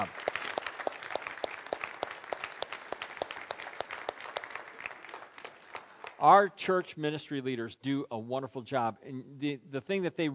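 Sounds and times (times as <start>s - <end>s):
speech: 0.0s - 0.3s, 6.2s - 10.3s
room full of people applauding: 0.0s - 6.5s.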